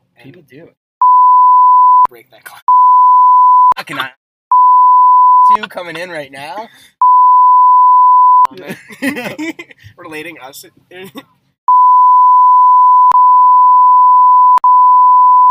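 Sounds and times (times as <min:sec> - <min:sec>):
speech: 0:00.2 - 0:00.8, 0:02.1 - 0:02.7, 0:03.8 - 0:04.2, 0:05.5 - 0:07.0, 0:08.5 - 0:11.4
censor bleep tone: 0:01.0 - 0:02.1, 0:02.7 - 0:03.8, 0:04.5 - 0:05.6, 0:07.0 - 0:08.5, 0:11.7 - 0:15.4
laughter: 0:08.5 - 0:09.8.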